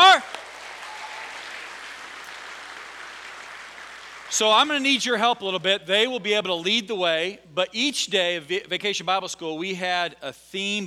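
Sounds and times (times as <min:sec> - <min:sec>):
audience applause for children: 0:00.0 - 0:04.4
speech: 0:04.3 - 0:10.8.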